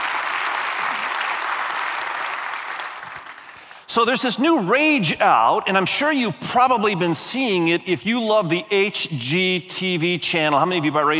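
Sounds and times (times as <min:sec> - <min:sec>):
audience applause: 0:00.0 - 0:03.8
speech: 0:03.9 - 0:11.1.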